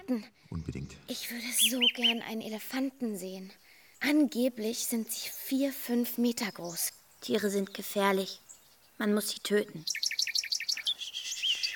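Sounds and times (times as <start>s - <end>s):
speech: 0.1s - 8.4s, 9.0s - 10.3s
bird chirping: 0.5s - 11.7s.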